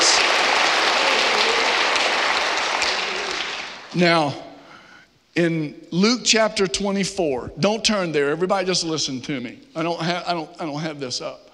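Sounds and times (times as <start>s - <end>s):
audience clapping: 0.0s - 4.0s
speech: 3.9s - 4.5s, 5.4s - 11.4s.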